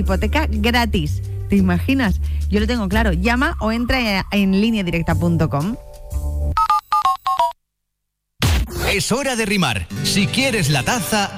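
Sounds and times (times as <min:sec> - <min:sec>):
speech: 0:00.0 - 0:05.8, 0:09.0 - 0:11.3
electronic telephone ring: 0:06.6 - 0:07.6.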